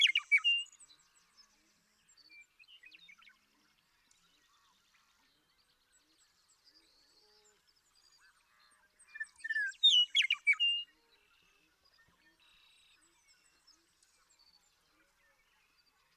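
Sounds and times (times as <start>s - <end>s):
Western meadowlark singing: 0.0s - 0.7s, 9.1s - 10.9s.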